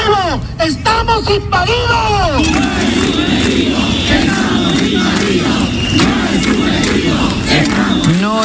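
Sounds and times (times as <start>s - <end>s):
speech: 0.4s - 2.5s
protest crowd shouting: 2.4s - 8.4s.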